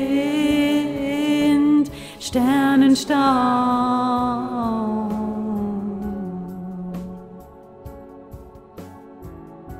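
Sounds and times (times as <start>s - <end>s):
middle voice melody: 0.0s - 7.6s.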